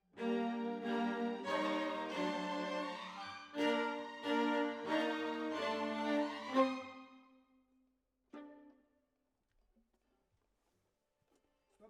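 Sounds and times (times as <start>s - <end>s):
violas: 0.2s - 7.3s.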